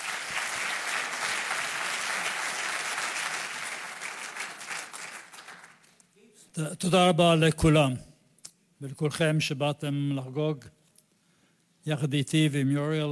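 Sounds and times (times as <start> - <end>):
crowd applauding: 0.0 - 6.0
speech: 6.6 - 8.1, 8.8 - 10.8, 11.8 - 13.0.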